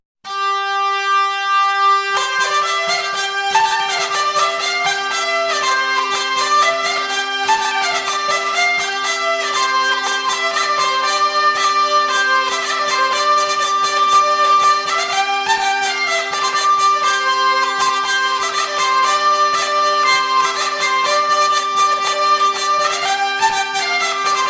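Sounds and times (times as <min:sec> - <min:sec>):
hurdy-gurdy: 0:00.3 - 0:24.4.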